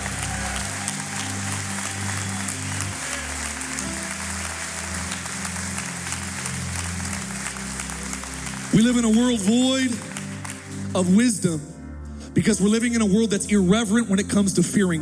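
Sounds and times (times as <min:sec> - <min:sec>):
church audience hand clapping: 0:00.0 - 0:11.5
speech: 0:08.7 - 0:10.1, 0:10.9 - 0:11.7, 0:12.4 - 0:15.0.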